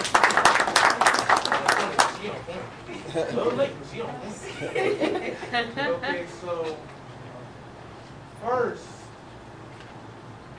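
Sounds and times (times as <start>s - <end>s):
audience applause: 0.0s - 2.3s
laughter: 2.9s - 6.5s
speech: 3.2s - 7.0s, 8.4s - 9.0s.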